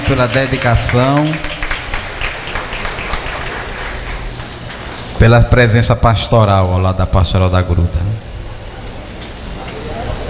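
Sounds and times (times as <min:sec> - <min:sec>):
many hands clapping at a festival at the Santuário de Santa Clara: 0:00.0 - 0:05.2
speech: 0:00.1 - 0:01.5, 0:05.2 - 0:08.3.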